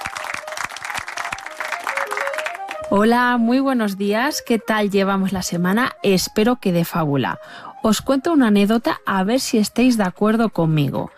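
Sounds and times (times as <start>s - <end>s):
audience applause for a presenter: 0.0s - 3.0s
speech: 2.9s - 11.1s.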